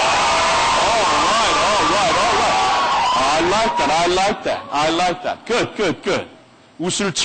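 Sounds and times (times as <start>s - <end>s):
teenagers screaming: 0.0s - 4.8s
speech: 3.6s - 7.2s.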